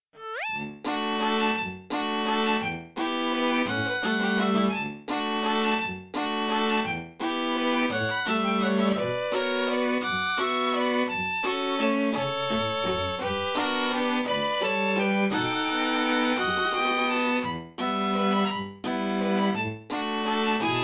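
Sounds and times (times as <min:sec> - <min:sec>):
Christmas waltz for string quartet: 0:01.0 - 0:20.8.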